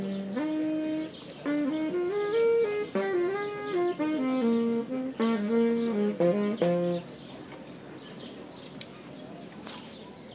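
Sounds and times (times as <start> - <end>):
saxophone at Treptower Park: 0.0 - 7.1.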